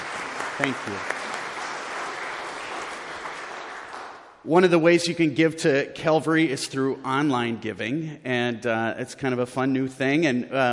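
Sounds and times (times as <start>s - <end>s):
audience applause at a church service: 0.0s - 4.4s
speech: 0.6s - 1.2s, 4.4s - 10.7s.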